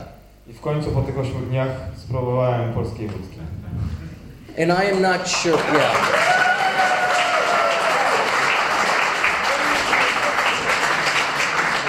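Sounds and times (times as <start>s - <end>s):
speech: 0.5s - 4.0s, 4.6s - 6.4s
crowd cheering and applauding: 5.5s - 11.8s
whoops and shouted voices: 6.1s - 8.4s.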